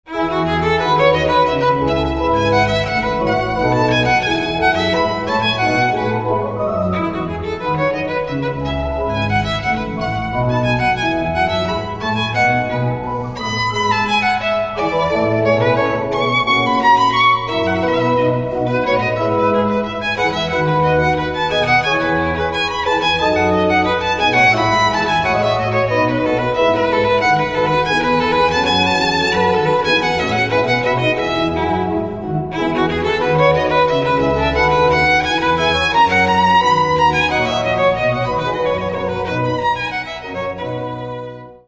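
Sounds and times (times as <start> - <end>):
violin: 0.1 - 41.6.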